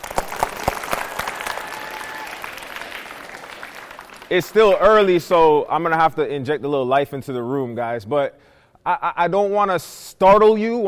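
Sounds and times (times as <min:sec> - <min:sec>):
audience clapping: 0:00.0 - 0:05.3
speech: 0:04.3 - 0:10.8.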